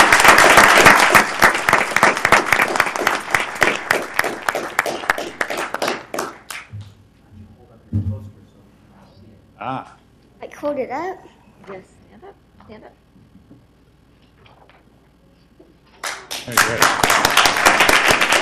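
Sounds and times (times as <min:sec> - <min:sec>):
audience applause: 0:00.0 - 0:06.7, 0:16.0 - 0:18.3
speech: 0:10.8 - 0:11.9.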